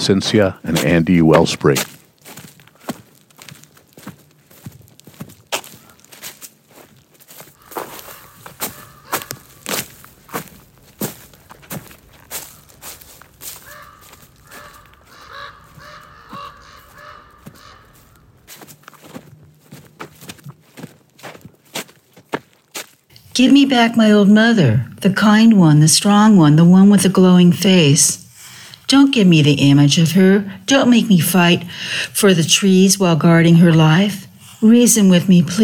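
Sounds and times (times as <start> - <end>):
speech: 0.0 - 2.0, 23.4 - 28.2, 28.9 - 35.6
footsteps on woodland path: 0.0 - 24.5, 25.1 - 35.6
crow cawing: 7.6 - 10.5, 12.2 - 18.7.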